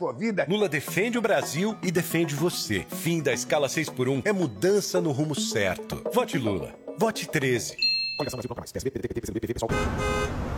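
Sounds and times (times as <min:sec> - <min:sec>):
speech: 0:00.0 - 0:10.5
busy city traffic: 0:09.7 - 0:10.5
car horns honking: 0:09.7 - 0:10.5.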